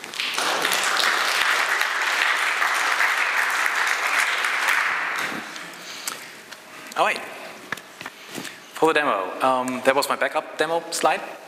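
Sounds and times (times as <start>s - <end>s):
crowd applauding: 0.0s - 5.6s
speech: 8.8s - 11.4s.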